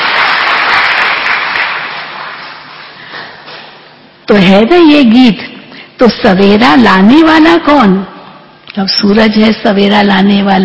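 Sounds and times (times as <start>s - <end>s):
group clapping after a song: 0.0s - 3.8s
speech: 4.3s - 8.1s, 8.8s - 10.6s.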